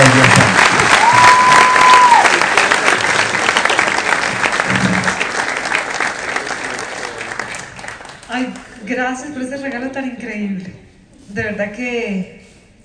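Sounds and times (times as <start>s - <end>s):
audience applause: 0.0s - 8.8s
speech: 9.1s - 12.4s.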